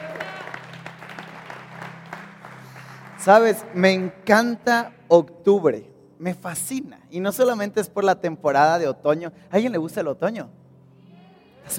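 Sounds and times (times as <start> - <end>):
audience applause: 0.0 - 4.8
speech: 3.2 - 10.6.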